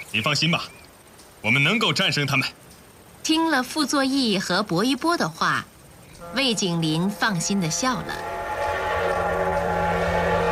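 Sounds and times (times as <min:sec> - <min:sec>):
speech: 0:00.1 - 0:02.6, 0:03.2 - 0:08.4
armored train setting off: 0:06.0 - 0:10.4.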